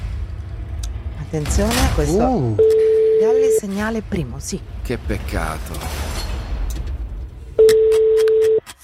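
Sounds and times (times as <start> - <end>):
low rumbling noise: 0.0 - 7.7
speech: 1.3 - 6.1
telephone ringing: 2.6 - 3.6, 7.6 - 8.6.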